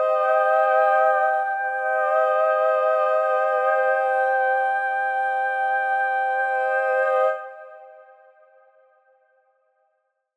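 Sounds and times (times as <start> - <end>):
ethereal vocal samples sustaining a C minor chord in two octaves: 0.0 - 7.8.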